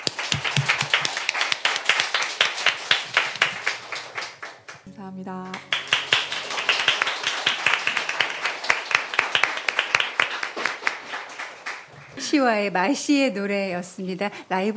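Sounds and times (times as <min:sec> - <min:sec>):
audience applause: 0:00.0 - 0:04.9, 0:05.6 - 0:12.2
speech: 0:05.0 - 0:05.8, 0:12.3 - 0:14.7.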